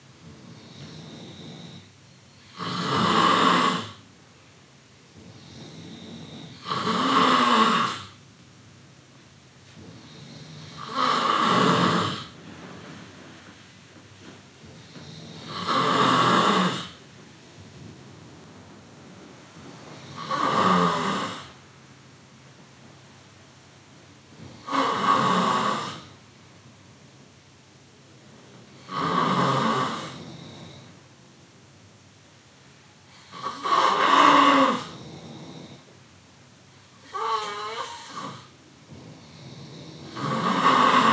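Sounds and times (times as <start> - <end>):
person snoring: 0.5 - 4.0, 5.4 - 8.2, 10.0 - 12.4, 14.9 - 17.0, 20.1 - 21.6, 24.6 - 26.1, 28.8 - 30.8, 33.2 - 35.9, 37.0 - 38.5, 39.2 - 41.1.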